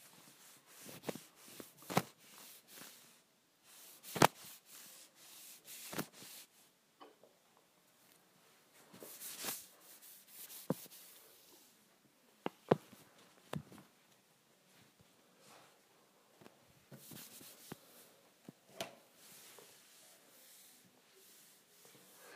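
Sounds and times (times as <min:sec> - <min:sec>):
wipe dragged across a counter: 0:00.0 - 0:06.6, 0:09.0 - 0:11.6, 0:17.0 - 0:17.8, 0:19.2 - 0:22.2.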